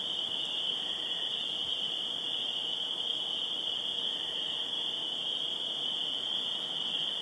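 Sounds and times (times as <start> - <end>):
night insects and crickets chirring in the woods: 0.0 - 7.2.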